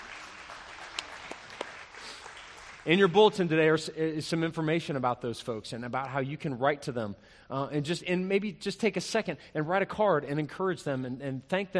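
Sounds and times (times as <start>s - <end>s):
church congregation clapping for baptisms: 0.0s - 3.8s
speech: 2.8s - 11.7s.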